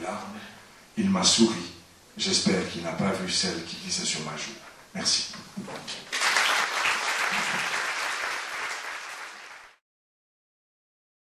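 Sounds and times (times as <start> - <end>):
speech: 1.0 - 6.2
audience applause: 6.1 - 9.8.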